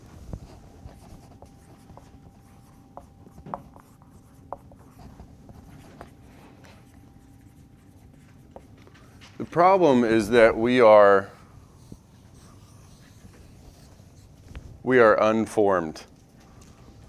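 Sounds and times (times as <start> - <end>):
low steady hum: 0.0 - 17.0
marker scratching across a board: 0.5 - 8.8, 11.7 - 14.6
speech: 9.4 - 11.3, 14.9 - 16.1.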